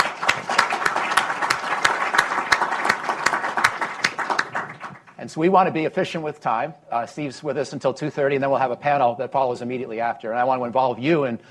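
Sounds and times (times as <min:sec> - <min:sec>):
applause welcoming a speaker at a Brookings event: 0:00.0 - 0:05.1
speech: 0:05.3 - 0:11.4.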